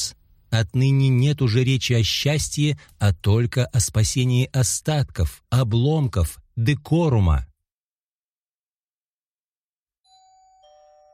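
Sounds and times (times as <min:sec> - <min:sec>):
speech: 0:00.5 - 0:07.5
two-tone ding-dong doorbell chime in an entrance hall: 0:10.0 - 0:11.1.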